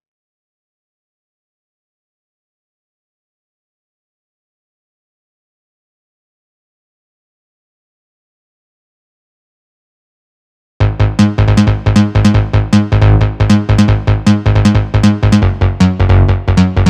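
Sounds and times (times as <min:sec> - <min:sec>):
last boss game music bass loop: 0:10.8 - 0:16.8.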